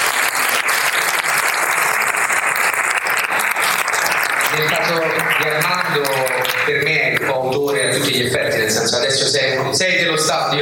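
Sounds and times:
audience applause: 0:00.0 - 0:07.4
speech: 0:04.6 - 0:10.6.

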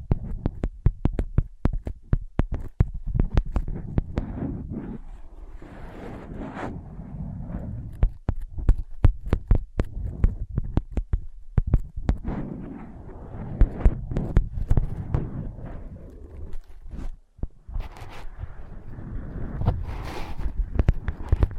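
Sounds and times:
tapping on ear pads: 0:00.0 - 0:04.4, 0:07.8 - 0:12.3, 0:13.5 - 0:15.6, 0:20.4 - 0:21.5
scratching on ear pads: 0:00.0 - 0:21.5
low rumble: 0:02.8 - 0:21.5.

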